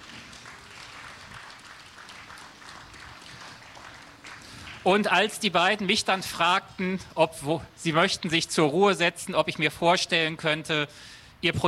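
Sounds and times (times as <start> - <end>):
audience applause: 0.0 - 5.0
speech: 4.8 - 11.6.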